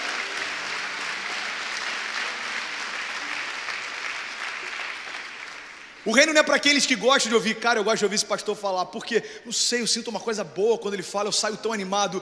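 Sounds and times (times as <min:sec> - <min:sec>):
audience applauding: 0:00.0 - 0:06.6
speech: 0:06.0 - 0:12.2.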